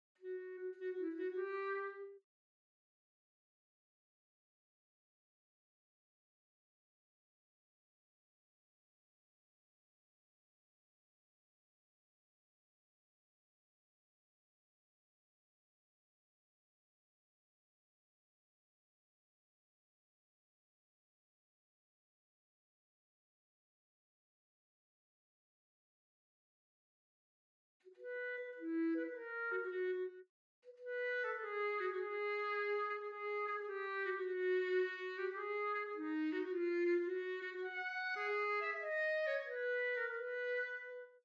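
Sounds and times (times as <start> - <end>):
clarinet: 0.2 - 2.2, 27.8 - 41.2.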